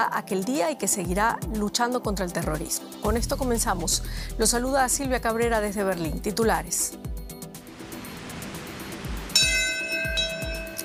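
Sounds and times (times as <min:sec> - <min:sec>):
speech: 0:00.0 - 0:07.2
memorial bell ringing at Ground Zero: 0:09.3 - 0:10.8.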